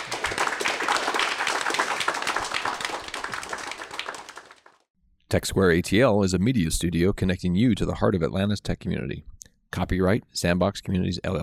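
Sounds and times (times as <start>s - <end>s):
warm round of applause: 0.0s - 4.9s
speech: 5.3s - 11.4s.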